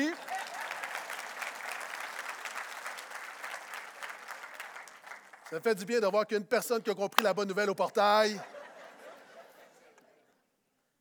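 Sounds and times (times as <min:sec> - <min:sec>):
audience applause: 0:00.0 - 0:05.6
speech: 0:05.5 - 0:08.6
laughter: 0:07.2 - 0:10.3.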